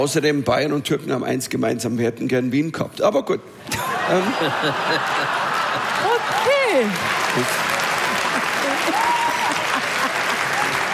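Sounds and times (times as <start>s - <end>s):
speech: 0.0s - 6.0s, 6.8s - 7.6s
laughter: 3.6s - 10.9s
applause: 5.2s - 10.9s.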